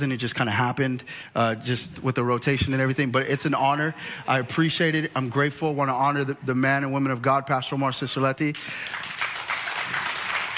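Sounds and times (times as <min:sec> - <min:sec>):
speech: 0:00.0 - 0:09.2
audience applause: 0:08.7 - 0:10.5.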